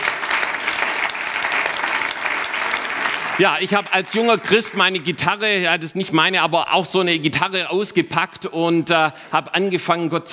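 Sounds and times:
audience applause: 0.0s - 5.4s
speech: 3.4s - 10.3s.

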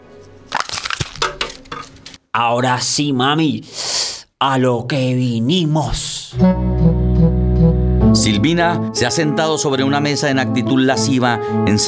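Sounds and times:
empty bottle thrown into a wastebasket full of papers and disposable cups: 0.5s - 2.2s
speech: 2.4s - 6.9s, 8.2s - 11.8s.

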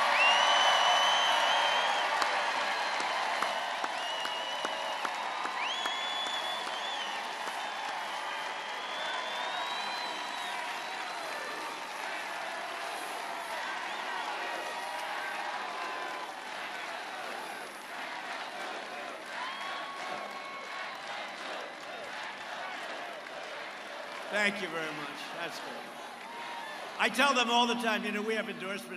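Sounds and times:
whistles and whoops: 0.0s - 11.8s, 19.4s - 21.0s
crowd applauding law enforcement at a Trump rally in Jacksonville Florida: 0.0s - 28.9s
speech: 24.4s - 26.0s, 27.0s - 28.9s.

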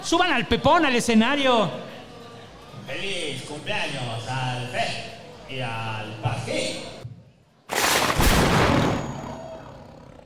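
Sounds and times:
speech: 0.1s - 1.9s, 2.9s - 6.9s
gunshot sound effect with roaring tail: 7.7s - 9.5s.

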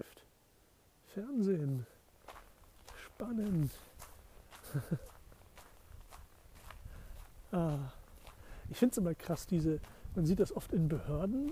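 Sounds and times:
speech: 1.2s - 1.9s, 3.2s - 3.9s, 4.7s - 5.2s, 7.5s - 8.0s, 8.7s - 11.4s
footsteps of a person walking outdoors at night past a police station: 1.7s - 11.4s
laughter: 4.6s - 5.2s.

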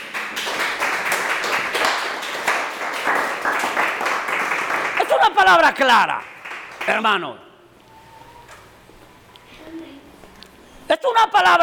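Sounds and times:
audience applauding: 0.0s - 7.1s
speech: 5.5s - 6.3s, 6.9s - 7.4s, 11.0s - 11.6s.

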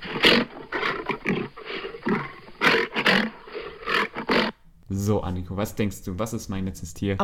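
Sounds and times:
lion roaring: 0.0s - 4.5s
speech: 5.0s - 7.2s.

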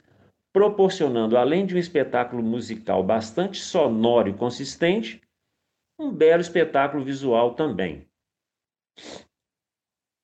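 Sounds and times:
speech: 0.5s - 5.2s, 6.0s - 8.1s, 9.0s - 9.2s
nasal sniff: 9.0s - 9.3s.

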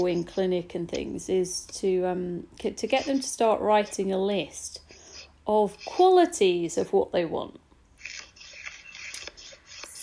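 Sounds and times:
speech: 0.0s - 4.8s, 5.5s - 7.6s
paper shuffling: 8.0s - 10.0s.

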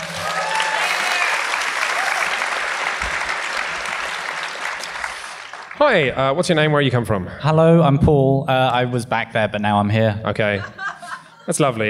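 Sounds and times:
audience applause: 0.0s - 6.0s
speech: 5.8s - 10.8s, 11.4s - 11.8s
laughter: 10.4s - 11.8s.

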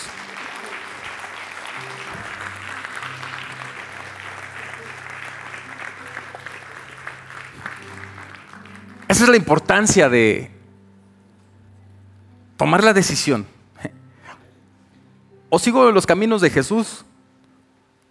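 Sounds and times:
audience applause: 0.0s - 9.9s
speech: 9.1s - 10.5s, 12.6s - 14.0s, 15.5s - 17.1s.

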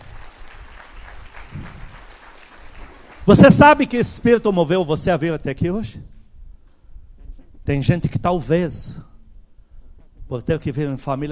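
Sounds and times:
audience clapping: 0.0s - 4.7s
speech: 3.2s - 6.1s, 7.7s - 9.1s, 10.3s - 11.2s.

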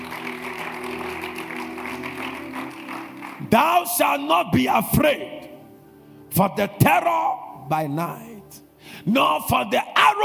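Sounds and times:
audience clapping: 0.0s - 4.0s
speech: 3.5s - 5.4s, 6.3s - 10.2s.

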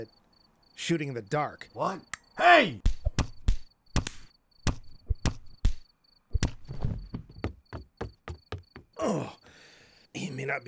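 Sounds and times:
speech: 0.0s - 0.2s, 0.8s - 3.0s, 10.4s - 10.6s
punches in a fistfight, a right hook and an uppercut: 2.9s - 9.0s.

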